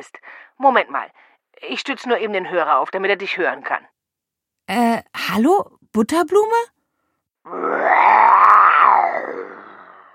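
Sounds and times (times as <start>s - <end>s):
speech: 0.0s - 3.9s, 4.7s - 6.8s, 7.4s - 8.4s
lion roaring: 7.5s - 10.1s.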